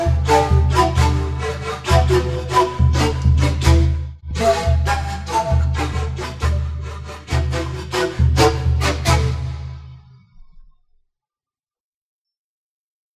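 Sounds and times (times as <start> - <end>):
sikus panpipes: 0.0 - 10.1.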